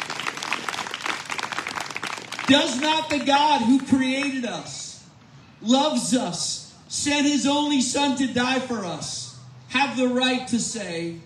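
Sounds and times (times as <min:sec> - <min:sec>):
crowd applauding: 0:00.0 - 0:03.9
speech: 0:02.5 - 0:04.8, 0:05.6 - 0:09.2, 0:09.8 - 0:11.2.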